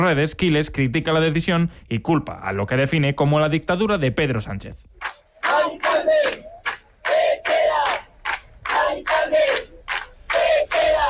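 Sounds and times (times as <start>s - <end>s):
speech: 0.0s - 4.9s, 5.7s - 6.4s
crowd of neighbours shouting protest chants: 5.3s - 11.0s.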